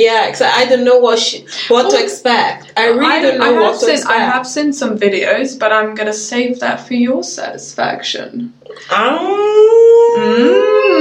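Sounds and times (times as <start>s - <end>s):
speech: 0.0s - 10.9s
wolf-like howl: 9.0s - 10.9s.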